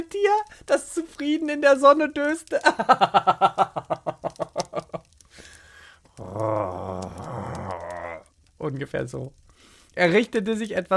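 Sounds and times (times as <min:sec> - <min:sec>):
speech: 0:00.0 - 0:03.6, 0:08.8 - 0:09.4, 0:10.0 - 0:10.9
laughter: 0:02.7 - 0:05.0
breathy hiss: 0:05.2 - 0:08.3, 0:09.4 - 0:10.1
voice imitating a contented purr: 0:06.2 - 0:08.3.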